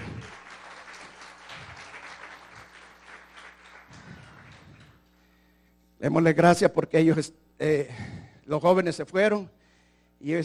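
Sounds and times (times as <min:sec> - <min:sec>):
audience applauding: 0:00.0 - 0:05.1
speech: 0:06.0 - 0:09.6, 0:10.2 - 0:10.4.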